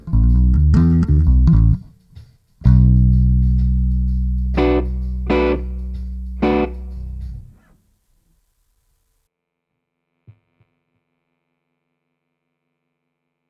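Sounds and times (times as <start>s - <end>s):
bass loops: 0.0s - 1.9s, 2.6s - 7.6s.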